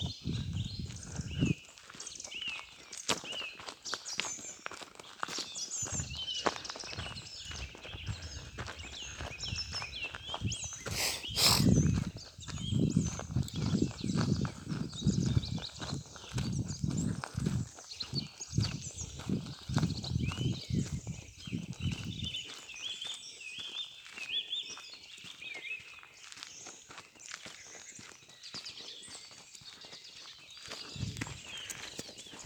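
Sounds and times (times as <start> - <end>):
birds: 0.0 - 32.4
footsteps: 10.9 - 11.7.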